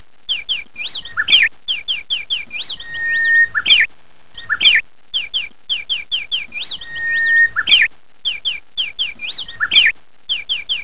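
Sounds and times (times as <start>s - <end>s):
bird tweet: 0.3s - 10.8s.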